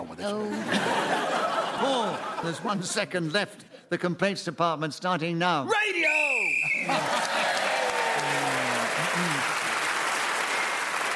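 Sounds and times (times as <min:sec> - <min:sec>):
speech: 0:00.2 - 0:00.8, 0:02.1 - 0:06.2, 0:06.9 - 0:07.4
laughter: 0:00.3 - 0:03.2, 0:06.7 - 0:09.5
audience round of applause: 0:06.7 - 0:11.1.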